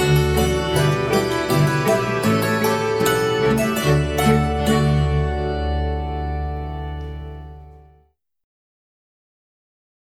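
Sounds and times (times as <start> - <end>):
hammered dulcimer polka: 0.0 - 8.0.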